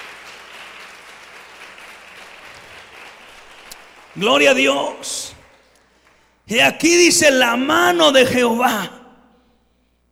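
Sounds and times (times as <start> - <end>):
audience applauding: 0.0 - 6.3
speech: 4.2 - 5.4, 6.5 - 9.0.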